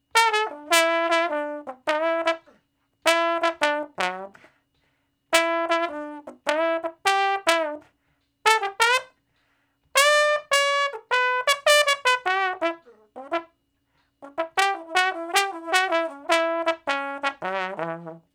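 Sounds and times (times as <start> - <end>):
trombone shuffle in E: 0.0 - 4.5, 5.3 - 9.2, 9.9 - 13.6, 14.2 - 18.3.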